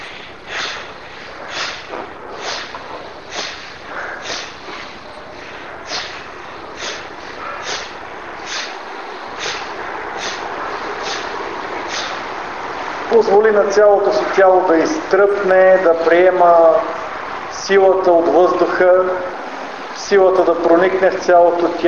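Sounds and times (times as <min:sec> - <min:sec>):
bhastrika bellows breathing: 0:00.0 - 0:14.6
constant hiss: 0:00.0 - 0:21.8
speech: 0:13.4 - 0:16.9, 0:17.6 - 0:19.3, 0:20.1 - 0:21.8.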